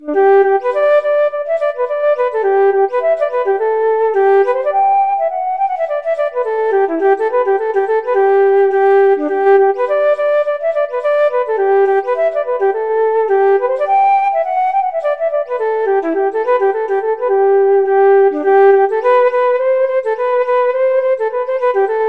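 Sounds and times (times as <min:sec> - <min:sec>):
flute: 0:00.0 - 0:22.0.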